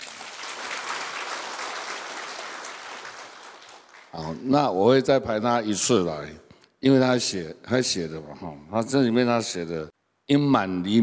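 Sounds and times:
audience applause: 0.0 - 4.3
speech: 4.1 - 11.0.

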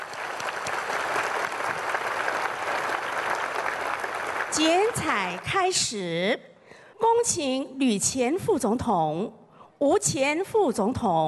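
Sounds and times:
audience applause at ceremony: 0.0 - 5.5
speech: 4.6 - 11.2.

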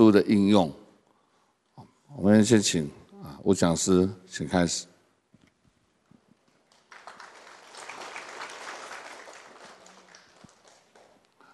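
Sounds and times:
speech: 0.0 - 0.8, 2.2 - 4.9
audience applause: 6.6 - 11.5.

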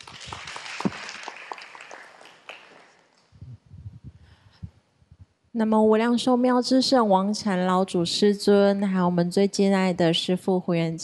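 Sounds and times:
audience clapping: 0.0 - 3.3
speech: 5.6 - 11.0.

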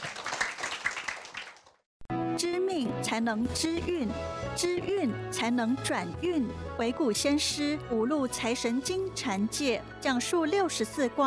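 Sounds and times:
faint audience applause at a talk on end-of-life spiritual care: 0.0 - 1.8
speech: 2.4 - 11.2.

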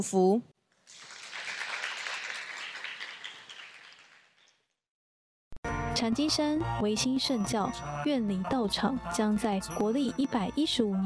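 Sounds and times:
speech: 0.0 - 0.5, 6.0 - 11.0
audience applause: 0.9 - 4.4.

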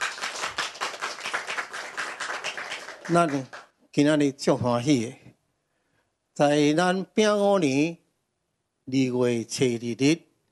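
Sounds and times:
audience clapping: 0.0 - 3.8
speech: 3.1 - 5.2, 6.4 - 8.0, 8.9 - 10.3.

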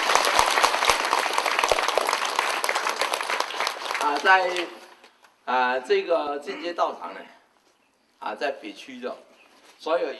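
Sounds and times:
warm applause from a crowd: 0.0 - 4.7
speech: 4.1 - 4.8, 5.5 - 7.4, 8.2 - 10.1.

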